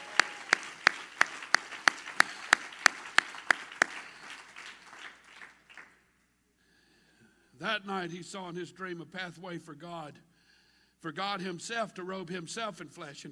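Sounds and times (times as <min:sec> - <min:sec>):
crowd noise: 0:00.0 - 0:05.0
audience clapping in unison: 0:00.0 - 0:06.0
speech: 0:07.6 - 0:10.3, 0:11.0 - 0:13.3.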